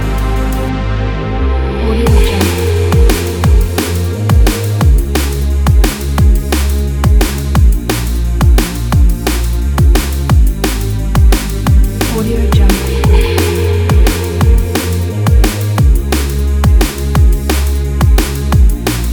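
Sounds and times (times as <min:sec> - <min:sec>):
powerful action drum and bass music: 0:00.0 - 0:19.1.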